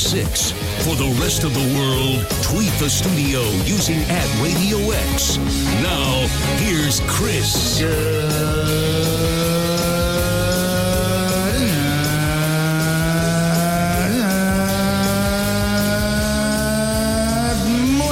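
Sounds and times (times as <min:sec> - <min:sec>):
voice imitating a car engine: 0:00.0 - 0:18.1
speech: 0:00.1 - 0:09.7.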